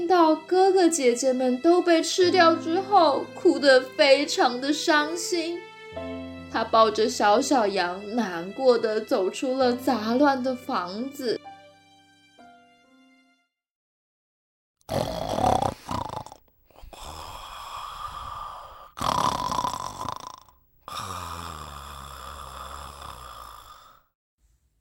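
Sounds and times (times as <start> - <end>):
speech: 0.1 - 11.4, 14.9 - 15.1
loud snoring: 14.8 - 24.2.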